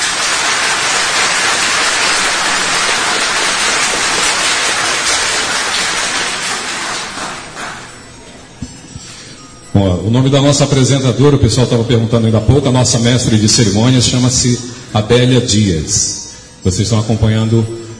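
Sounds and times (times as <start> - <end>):
audience applause: 0.0 - 8.0
speech: 9.8 - 17.8.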